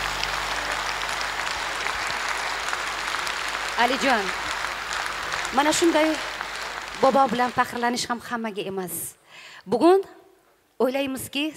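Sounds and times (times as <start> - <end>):
audience applause at a singing performance: 0.0 - 8.2
speech: 3.8 - 4.5, 5.5 - 6.3, 7.0 - 10.2, 10.8 - 11.5.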